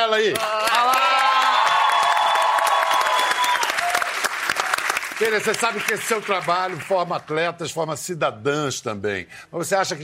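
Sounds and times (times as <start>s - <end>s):
speech: 0.1s - 0.6s, 5.2s - 10.0s
audience applause: 0.4s - 7.3s.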